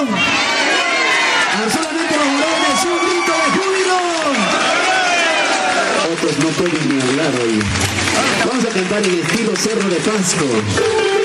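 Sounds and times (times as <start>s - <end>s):
audience shouting for joy: 0.0s - 8.9s
speech: 8.9s - 11.1s.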